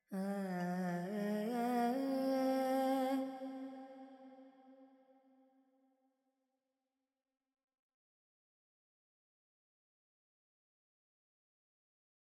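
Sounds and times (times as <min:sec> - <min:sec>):
Carnatic female vocal alaps in G pentatonic: 0:00.1 - 0:03.9.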